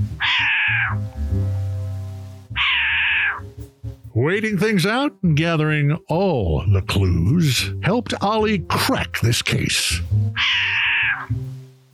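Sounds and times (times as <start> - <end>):
speech: 0.0 - 1.3, 4.2 - 11.5
short-eared owl cat-like calls: 0.2 - 1.0, 2.5 - 3.4, 10.4 - 11.4.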